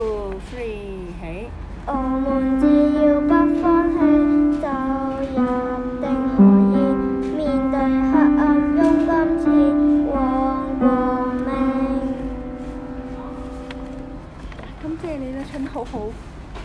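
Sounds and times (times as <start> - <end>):
old tune with new lyrics: 2.0 - 14.5.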